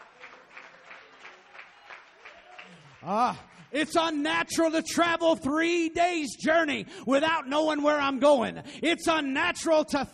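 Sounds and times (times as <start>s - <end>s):
audience clapping hands: 0.0s - 4.2s
speech: 3.0s - 10.1s.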